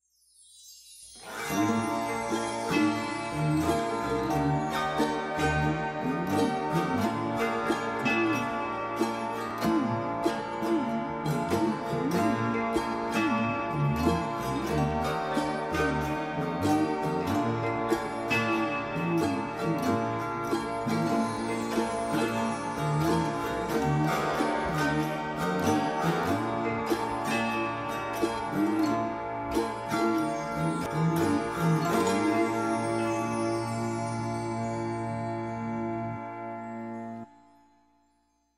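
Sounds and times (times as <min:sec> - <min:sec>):
xylophone: 0:00.9 - 0:36.0.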